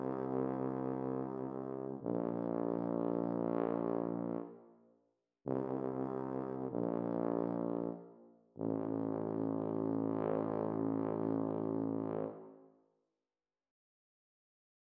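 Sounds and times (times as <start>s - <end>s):
solo tuba: 0.0s - 4.7s, 5.5s - 12.7s.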